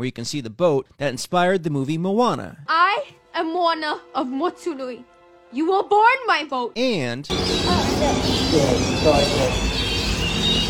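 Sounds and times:
speech: 0.0s - 9.7s
thousands of flying foxes: 7.3s - 10.6s.

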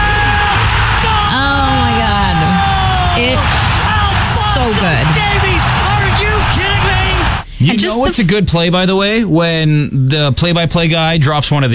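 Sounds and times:
people yelling and whooping: 0.0s - 7.4s
stadium crowd cheering after a goal: 0.0s - 7.5s
speech: 7.6s - 11.7s.

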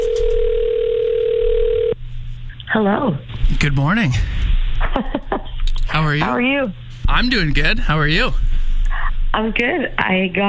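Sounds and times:
telephone dial tone: 0.0s - 2.0s
speech: 2.8s - 5.2s, 6.0s - 8.6s, 9.4s - 10.4s.

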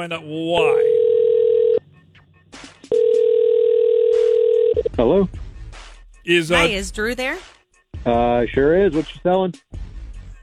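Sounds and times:
speech: 0.0s - 0.9s, 5.0s - 5.4s, 6.3s - 9.8s
telephone call ringing through: 0.6s - 1.8s, 2.9s - 4.9s.

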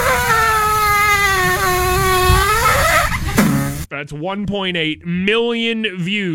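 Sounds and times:
waffle maker making squeaky toot noises: 0.0s - 3.4s
speech: 4.1s - 6.3s.

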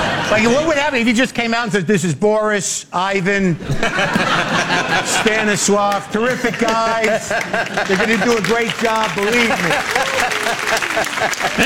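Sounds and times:
people laughing: 0.0s - 1.0s, 3.6s - 11.6s
speech: 0.3s - 11.6s
people clapping: 5.2s - 11.6s.

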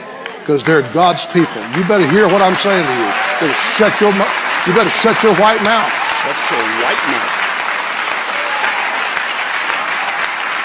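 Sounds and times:
audience applauding: 0.0s - 10.6s
speech: 0.5s - 7.4s.

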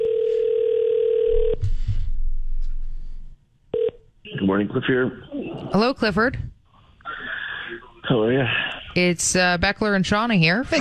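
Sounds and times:
telephone ringing as a call goes out: 0.0s - 1.6s, 3.8s - 4.0s
speech: 4.5s - 6.5s, 8.1s - 10.7s.

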